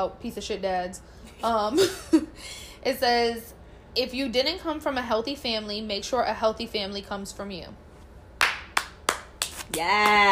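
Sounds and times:
speech: 0.0 - 7.8, 9.7 - 10.2
hands clapping: 8.4 - 10.2.

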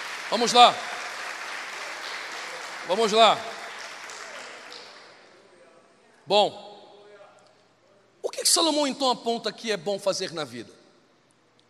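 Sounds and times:
audience applause: 0.0 - 5.2
speech: 0.3 - 0.9, 2.9 - 3.5, 6.3 - 6.7, 8.4 - 10.8.

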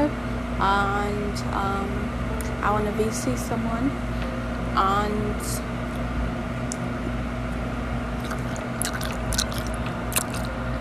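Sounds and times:
low hum: 0.0 - 10.7
speech: 0.6 - 4.2, 4.8 - 5.7
gum chewing: 8.2 - 10.6.

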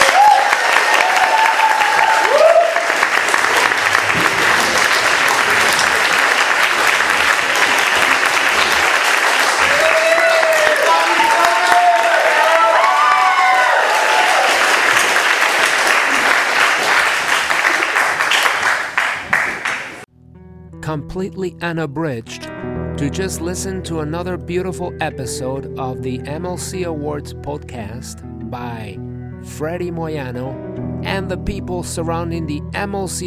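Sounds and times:
audience applause: 0.0 - 20.0
speech: 21.2 - 33.2.

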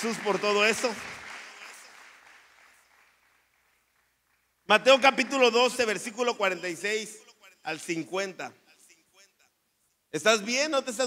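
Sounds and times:
speech: 0.0 - 1.2, 4.7 - 8.6, 10.1 - 11.0
audience applause: 0.0 - 4.5.

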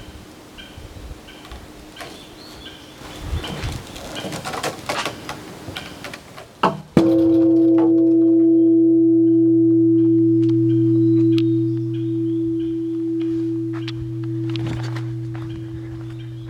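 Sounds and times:
large bell in a forest rung by a swinging log: 7.0 - 16.4.

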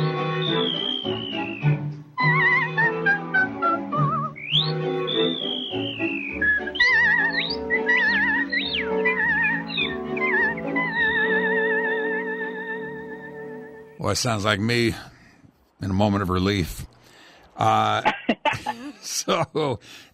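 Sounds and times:
whistled melody: 0.0 - 14.0
speech: 14.1 - 15.1, 15.8 - 16.9, 17.6 - 20.1.

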